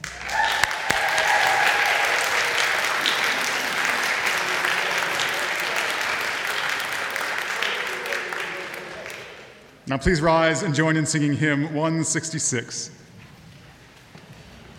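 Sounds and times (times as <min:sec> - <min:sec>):
audience applause: 0:00.0 - 0:09.8
speech: 0:09.9 - 0:13.0.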